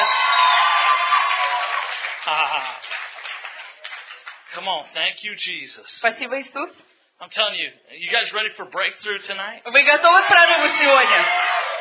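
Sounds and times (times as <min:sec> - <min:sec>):
audience clapping: 0:00.0 - 0:04.8
speech: 0:04.5 - 0:11.6.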